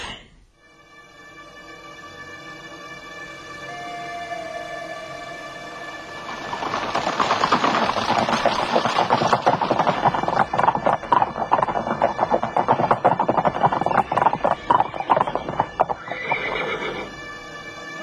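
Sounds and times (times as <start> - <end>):
hooves of arriving horsemen's horses clattering: 6.1 - 17.6
horses neighing and whinnying: 6.2 - 17.2.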